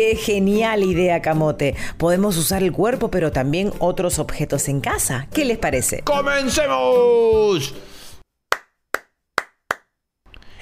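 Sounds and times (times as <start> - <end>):
speech: 0.0 - 8.0
rhythmic hand clapping: 8.5 - 9.9.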